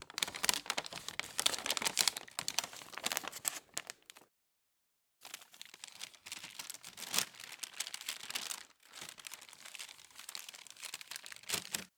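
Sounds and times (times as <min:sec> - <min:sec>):
brown paper bag crumpling and shaking: 0:00.0 - 0:04.2, 0:05.3 - 0:11.9.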